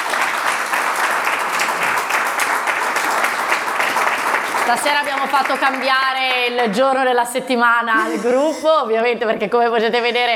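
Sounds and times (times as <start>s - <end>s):
crowd clapping: 0.0s - 6.8s
speech: 4.7s - 10.3s.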